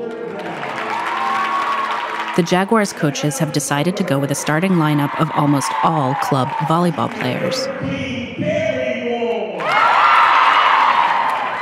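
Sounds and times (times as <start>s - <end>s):
gym crowd cheering: 0.0s - 8.0s, 9.3s - 11.6s
speech: 2.4s - 8.6s.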